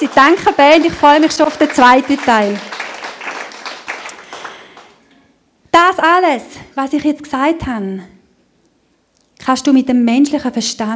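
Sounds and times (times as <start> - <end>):
speech: 0.0 - 2.8, 5.8 - 8.1, 9.4 - 10.9
church congregation clapping for the band: 0.0 - 5.1.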